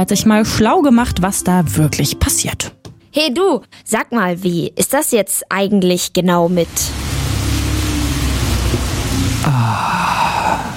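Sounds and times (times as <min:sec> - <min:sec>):
speech: 0:00.0 - 0:07.1, 0:09.4 - 0:10.2
rain falling: 0:06.4 - 0:10.7.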